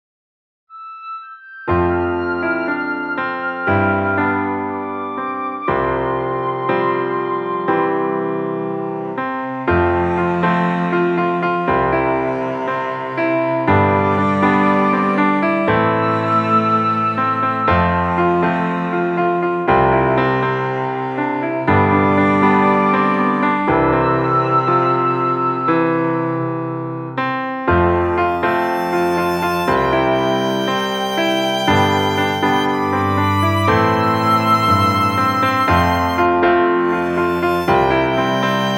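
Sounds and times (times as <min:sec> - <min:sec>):
full instrumental music: 0:00.7 - 0:38.7.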